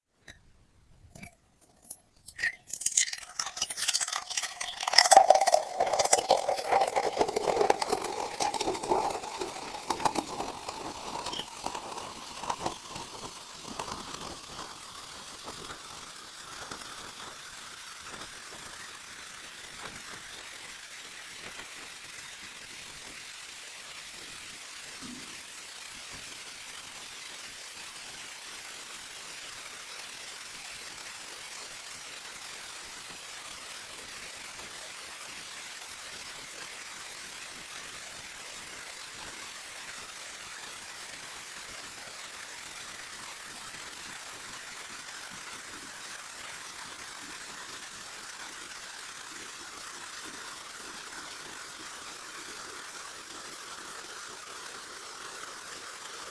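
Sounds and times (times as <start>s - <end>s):
bottle: 1.0s - 14.8s.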